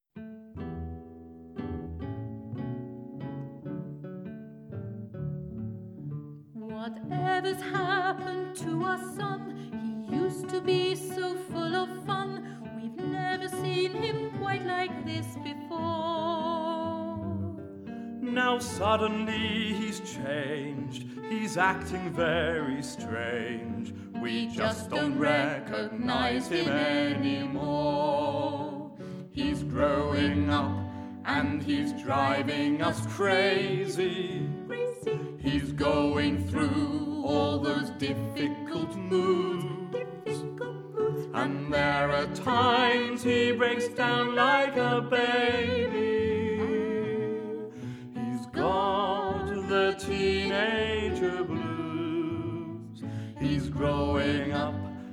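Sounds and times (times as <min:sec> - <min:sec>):
blues song: 0:00.2 - 0:55.1.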